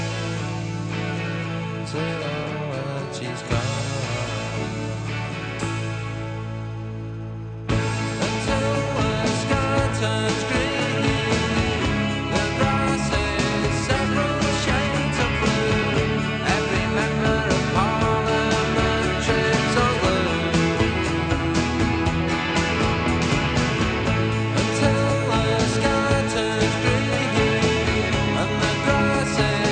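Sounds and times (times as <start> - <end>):
rock music: 0.0 - 29.6.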